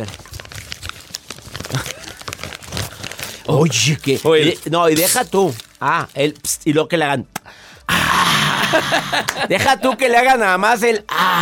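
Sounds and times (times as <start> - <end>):
speech: 0.0 - 0.3, 1.7 - 2.0, 3.5 - 7.4, 8.7 - 11.4
cookie wrapper being unwrapped: 0.0 - 6.7
laughter: 7.9 - 10.1.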